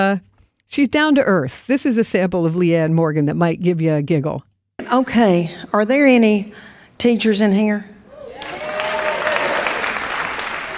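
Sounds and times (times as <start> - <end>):
speech: 0.0 - 7.9
faint voice or cheer: 8.1 - 10.7
audience clapping: 8.4 - 10.7.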